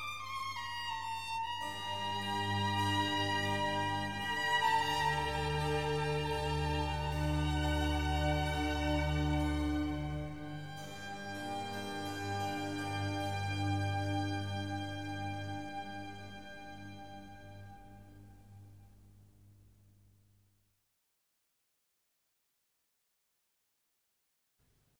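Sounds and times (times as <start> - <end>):
violin concerto adagio: 0.0 - 18.6.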